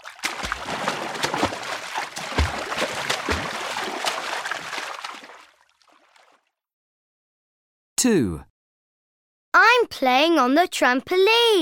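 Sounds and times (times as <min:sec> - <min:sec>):
child swimming and splashing in water: 0:00.0 - 0:06.4
speech: 0:08.0 - 0:08.5, 0:09.9 - 0:11.6.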